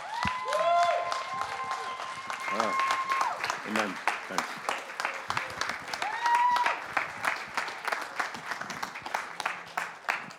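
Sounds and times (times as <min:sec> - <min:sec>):
voices cheering in a church congregation: 0:00.0 - 0:04.5, 0:05.2 - 0:07.1
church congregation applauding a guest pastor: 0:00.0 - 0:10.3
speech: 0:03.7 - 0:04.7.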